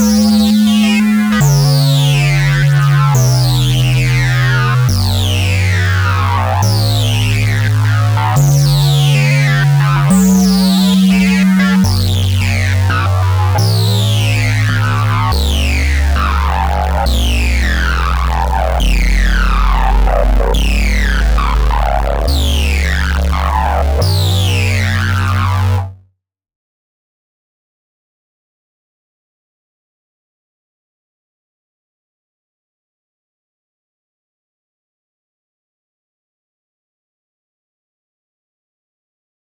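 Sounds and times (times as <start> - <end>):
bass dry and wet: 0.0 - 26.1.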